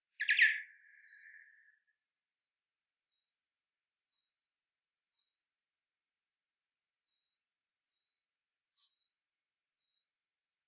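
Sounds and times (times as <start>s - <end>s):
bats calling with thin high downslurred chirps: 0.2s - 1.6s.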